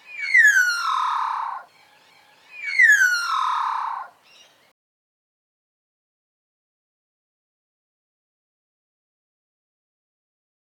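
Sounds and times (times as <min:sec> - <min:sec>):
satin bowerbird calling: 0:00.0 - 0:04.7.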